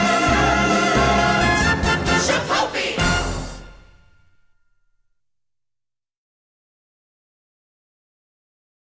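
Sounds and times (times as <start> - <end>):
vocals: 0.0 - 3.9.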